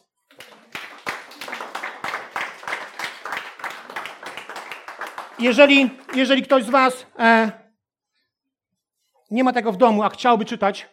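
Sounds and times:
audience clapping: 0:00.0 - 0:07.0
speech: 0:05.4 - 0:07.6, 0:09.3 - 0:10.9.

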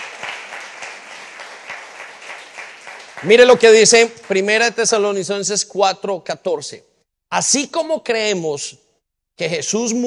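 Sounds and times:
audience applause: 0:00.0 - 0:04.7
speech: 0:03.2 - 0:08.8, 0:09.4 - 0:10.0.

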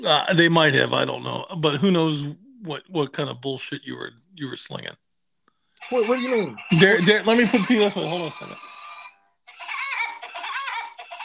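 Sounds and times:
speech: 0:00.0 - 0:05.0, 0:05.8 - 0:08.7
Woody Woodpecker cartoon laugh sound effect: 0:05.9 - 0:11.2.

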